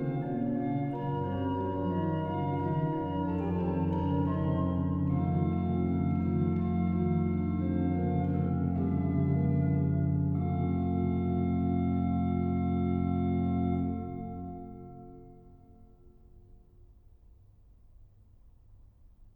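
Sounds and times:
organ: 0:00.0 - 0:15.5.

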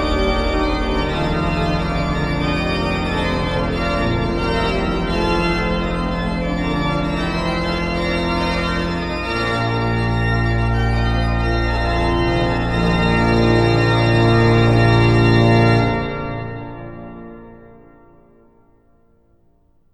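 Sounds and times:
prelude and fugue on organ: 0:00.0 - 0:18.6.

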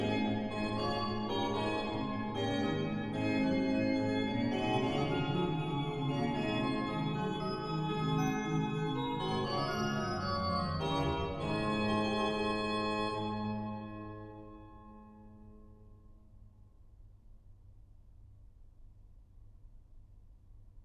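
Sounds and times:
organ fughetta: 0:00.0 - 0:14.2.

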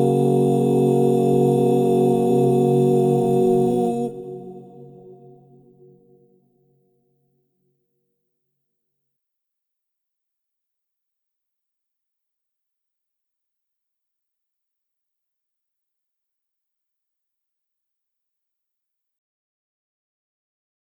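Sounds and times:
crystal bowls in F-sharp major: 0:00.0 - 0:04.3.

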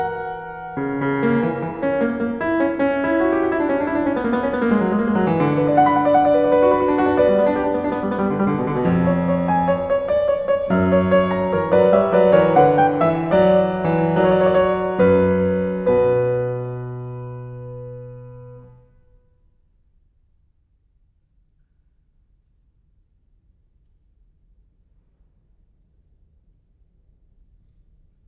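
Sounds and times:
two-part piano invention in B minor: 0:00.0 - 0:19.0.

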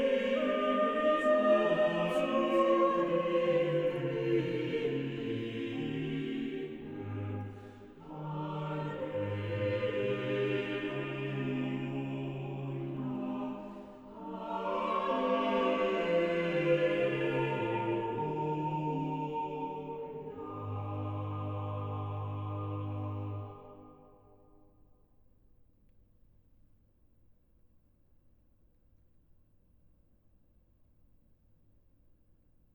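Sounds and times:
organ chorale: 0:00.0 - 0:24.4.

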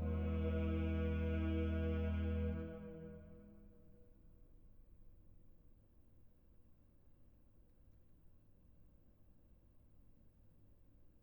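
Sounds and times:
organ chorale: 0:00.0 - 0:03.4.

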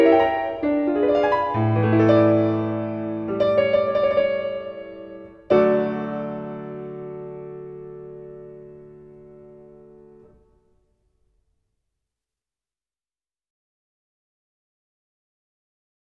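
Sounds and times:
prelude in D major: 0:00.0 - 0:09.8.

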